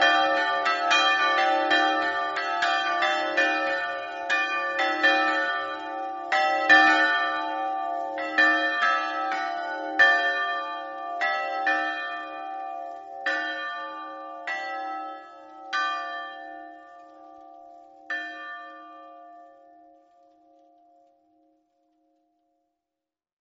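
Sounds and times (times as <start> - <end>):
bells ringing: 0.0 - 17.5.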